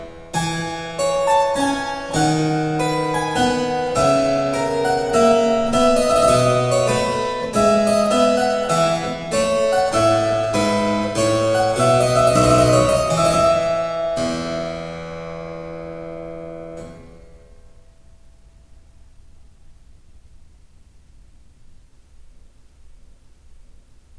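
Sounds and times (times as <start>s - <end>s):
harpsichord minuet suite in F major: 0.0s - 17.6s.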